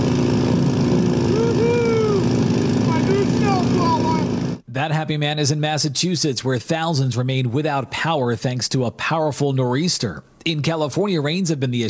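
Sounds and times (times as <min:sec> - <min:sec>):
snowblower engine running: 0:00.0 - 0:04.6
speech: 0:04.8 - 0:11.8.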